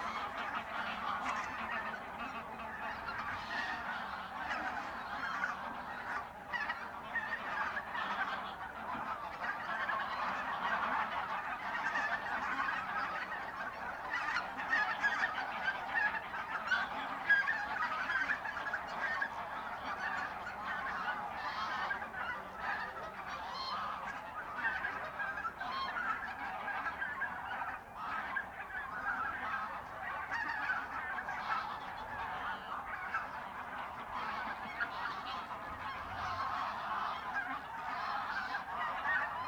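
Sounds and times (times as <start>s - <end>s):
large flock of geese honking: 0.0s - 39.4s.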